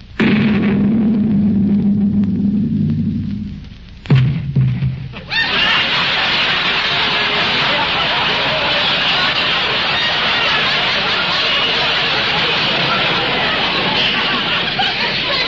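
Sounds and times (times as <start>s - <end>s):
cannon shot fired across a ship's bow: 0.2s - 3.5s, 4.1s - 5.2s
laughter: 5.3s - 15.4s.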